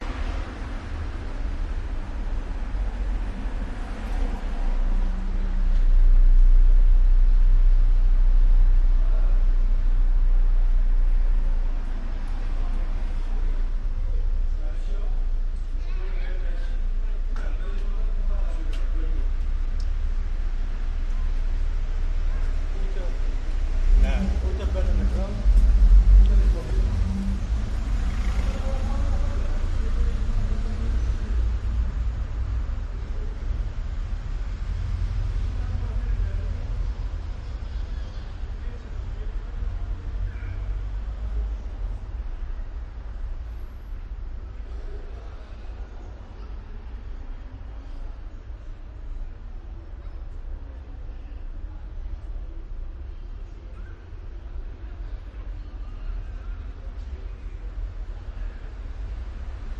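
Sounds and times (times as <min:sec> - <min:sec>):
Athens side street ambience on a weekday evening: 0:00.0 - 0:59.7.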